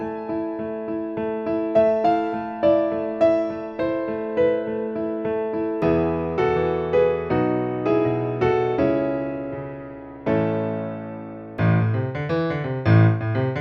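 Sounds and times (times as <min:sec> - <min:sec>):
piano midi: 0:00.0 - 0:13.5.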